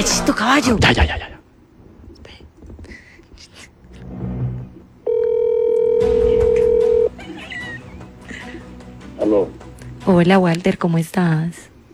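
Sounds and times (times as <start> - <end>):
speech: 0.0 - 1.4, 9.2 - 11.7
telephone call ringing tone: 5.0 - 7.2
laughter: 7.1 - 8.9.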